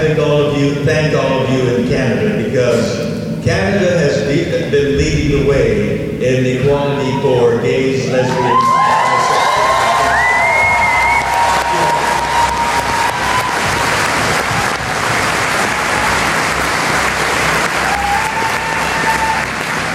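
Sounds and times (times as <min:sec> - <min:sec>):
speech: 0:00.1 - 0:08.8
audience whoops and shouts: 0:08.1 - 0:14.0, 0:17.8 - 0:19.5
audience clapping at a speech on equality in Canada: 0:08.4 - 0:19.9.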